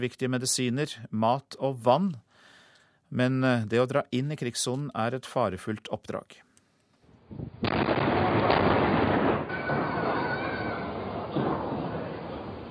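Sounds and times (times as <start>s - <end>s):
speech: 0.0s - 2.2s, 3.1s - 6.4s, 7.3s - 7.9s
tanks firing inside a city: 7.6s - 12.6s.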